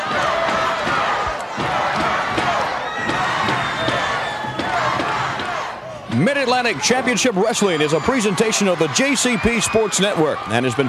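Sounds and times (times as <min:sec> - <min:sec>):
thuds and slaps: 0:00.0 - 0:05.7
wrestling arena crowd cheering: 0:00.0 - 0:10.8
whistles: 0:02.9 - 0:04.7, 0:09.2 - 0:10.1
speech: 0:06.2 - 0:10.8.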